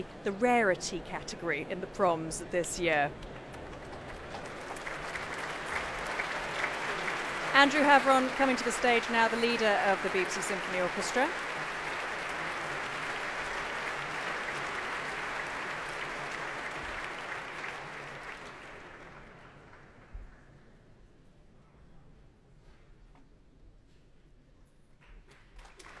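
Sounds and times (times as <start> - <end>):
speech: 0.0 - 3.4, 7.6 - 11.5
concert audience applause at the Royal Albert Hall: 0.0 - 20.1, 25.6 - 25.9.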